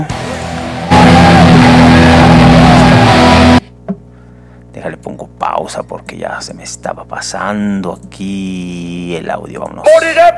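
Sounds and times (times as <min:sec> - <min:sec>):
loud band playing a song: 0:00.3 - 0:03.6
speech: 0:05.7 - 0:10.3.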